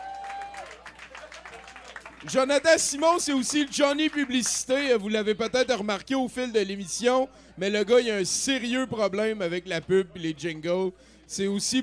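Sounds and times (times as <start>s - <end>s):
audience applause: 0.0s - 2.7s
speech: 2.2s - 11.8s.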